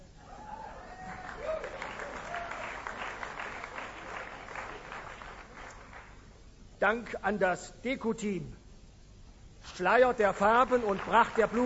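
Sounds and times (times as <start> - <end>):
audience applause: 0.8 - 6.2, 10.5 - 11.6
speech: 6.8 - 8.6, 9.7 - 11.6.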